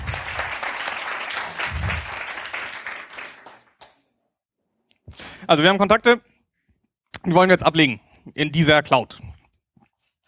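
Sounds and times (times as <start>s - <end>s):
applause: 0.0s - 4.0s
speech: 5.5s - 6.3s, 7.2s - 9.3s.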